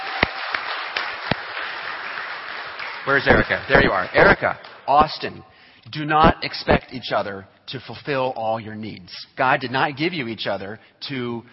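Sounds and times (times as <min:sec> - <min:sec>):
audience applause: 0:00.0 - 0:04.9
speech: 0:03.0 - 0:11.5.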